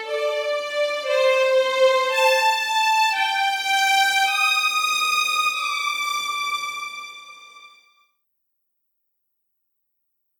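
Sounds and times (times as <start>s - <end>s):
first violins playing legato: 0.0s - 7.7s.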